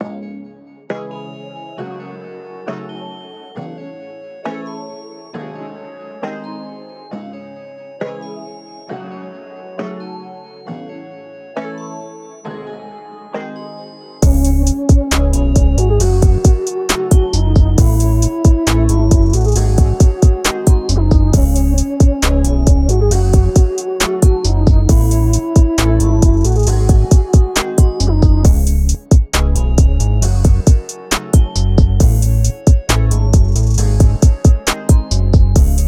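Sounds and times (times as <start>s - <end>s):
music beat in C sharp minor: 14.2s - 35.8s.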